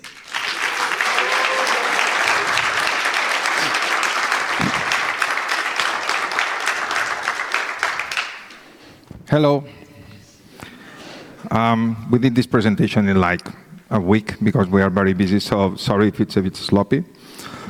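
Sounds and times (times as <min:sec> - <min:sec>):
audience applause: 0:00.0 - 0:08.7
speech: 0:09.3 - 0:09.8, 0:11.5 - 0:17.6.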